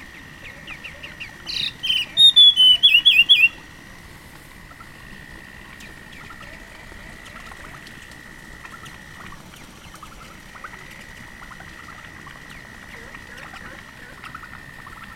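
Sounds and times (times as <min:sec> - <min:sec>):
Dusky fulvetta giving high, falling chirped notes: 0:00.4 - 0:03.6.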